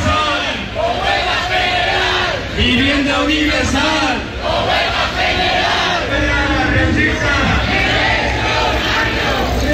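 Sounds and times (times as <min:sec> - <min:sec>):
demonstration crowd chanting slogans: 0:00.0 - 0:09.7
speech: 0:02.6 - 0:04.8.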